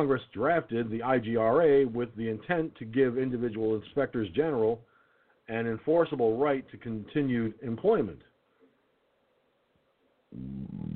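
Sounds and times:
speech: 0.0 - 4.9, 5.5 - 8.3, 10.3 - 10.9
loud low burp after drinking coffee: 10.3 - 10.9.

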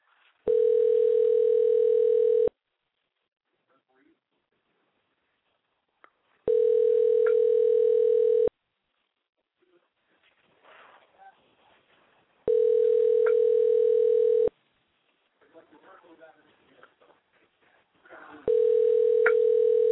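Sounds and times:
phone dialing and ringing unanswered: 0.5 - 2.5, 6.5 - 8.5, 12.5 - 14.5, 18.5 - 19.9.

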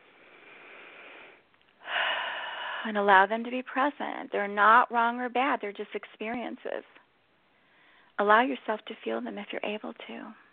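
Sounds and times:
deep breath during a guided meditation: 0.0 - 2.9, 7.6 - 8.1
speech: 2.8 - 7.0, 8.2 - 10.4.

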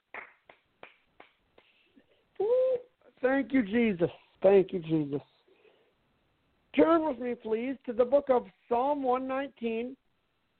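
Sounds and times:
audience clapping: 0.0 - 1.7
speech: 3.2 - 5.3, 6.8 - 10.0.

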